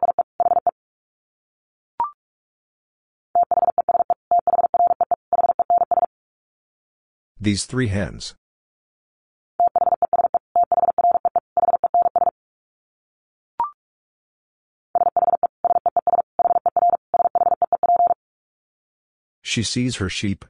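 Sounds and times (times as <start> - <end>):
Morse code dits at 45 wpm: 3.4 - 6.1, 9.6 - 12.3, 15.0 - 18.2
speech: 7.4 - 8.4, 19.6 - 20.4.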